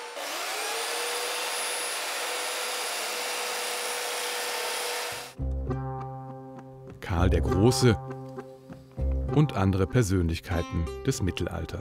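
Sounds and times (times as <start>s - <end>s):
chainsaw carving wood sculpture: 0.0s - 5.4s
speech: 7.1s - 8.1s, 9.3s - 11.7s.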